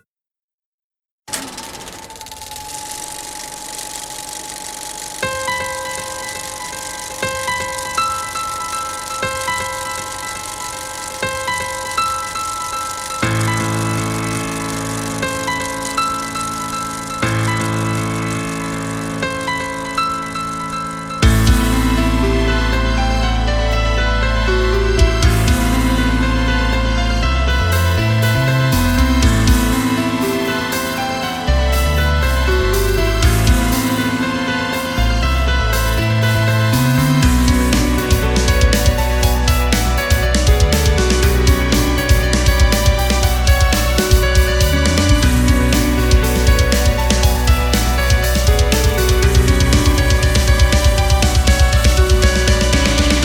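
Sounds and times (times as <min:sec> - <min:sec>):
instrumental music: 0:05.2 - 0:53.1.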